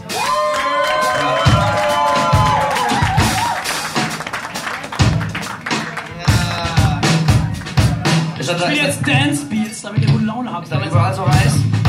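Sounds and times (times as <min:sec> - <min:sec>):
applause: 0:00.1 - 0:08.4
speech: 0:08.6 - 0:11.7.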